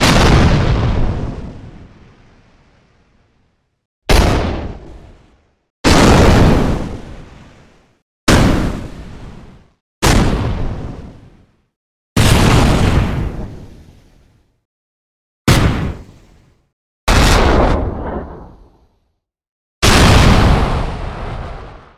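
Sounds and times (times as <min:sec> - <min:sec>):
big and small explosions: 0:00.0 - 0:02.3, 0:04.1 - 0:05.3, 0:05.9 - 0:07.5, 0:08.3 - 0:09.4, 0:10.0 - 0:11.2, 0:12.2 - 0:13.7, 0:15.5 - 0:16.1, 0:17.1 - 0:18.8, 0:19.8 - 0:21.9.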